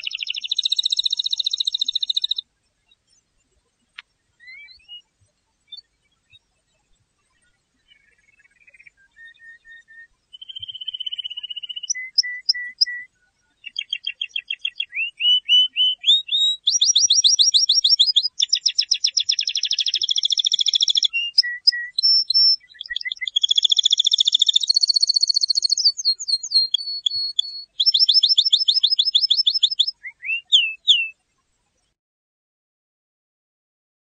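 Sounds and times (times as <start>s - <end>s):
canary singing: 0.0s - 2.4s, 4.4s - 5.1s, 7.9s - 31.2s.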